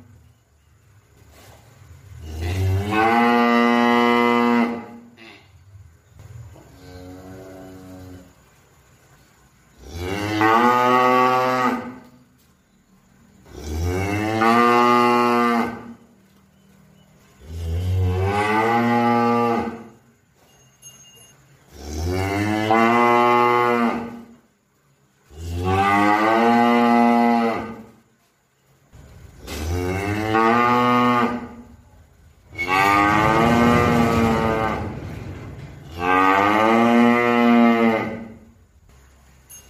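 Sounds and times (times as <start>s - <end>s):
cow mooing: 2.2s - 5.4s, 9.8s - 12.1s, 13.5s - 16.0s, 17.4s - 20.0s, 21.7s - 24.3s, 25.3s - 27.9s, 29.5s - 31.8s, 32.5s - 38.6s.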